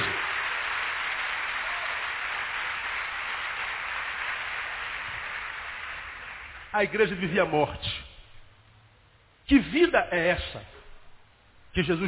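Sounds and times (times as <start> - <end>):
audience applauding: 0.0 - 7.3
speech: 6.8 - 8.0, 9.5 - 10.8, 11.8 - 12.0.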